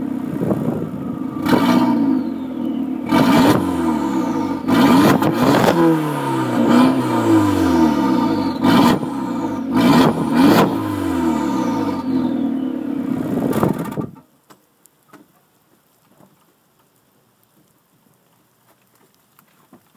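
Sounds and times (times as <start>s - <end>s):
wind blowing: 0.1s - 14.1s.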